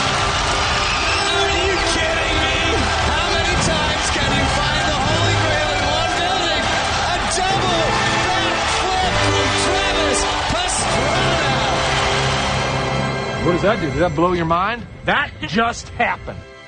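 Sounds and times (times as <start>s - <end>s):
whoops and shouts: 0.0s - 12.2s
large crowd standing and cheering: 0.0s - 15.7s
speech: 13.6s - 16.5s.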